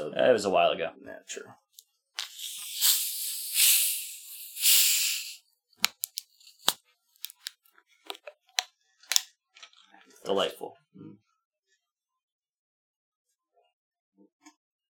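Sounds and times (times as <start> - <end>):
speech: 0.2 - 1.6, 10.3 - 11.2
Red Pop soda cans cracked open fizzing: 2.2 - 7.5
small sharp clicks and taps: 5.8 - 7.5.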